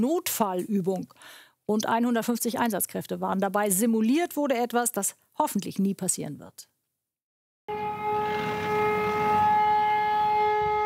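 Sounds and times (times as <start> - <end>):
speech: 0.0 - 6.7
loud emergency siren starting an airport drill: 7.7 - 10.8.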